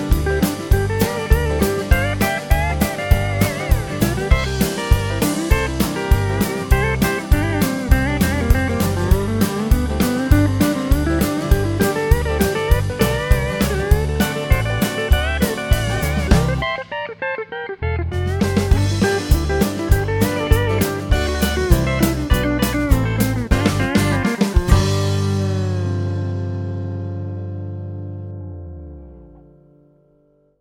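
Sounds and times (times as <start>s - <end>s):
country blues music in G: 0.0s - 29.7s.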